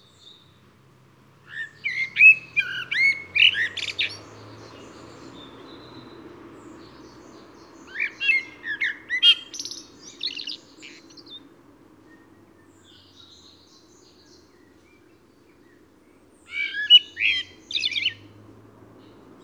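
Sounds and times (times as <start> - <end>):
Eurasian blackbird singing: 1.5 - 6.1, 7.8 - 11.4, 16.5 - 18.2.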